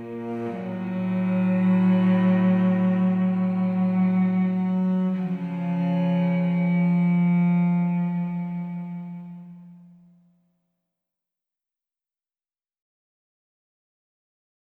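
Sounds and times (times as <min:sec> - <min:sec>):
instrumental music: 0:00.0 - 0:10.2.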